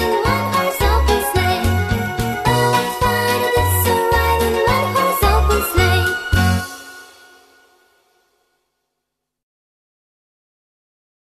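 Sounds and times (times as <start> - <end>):
Christmas song: 0.0 - 8.5.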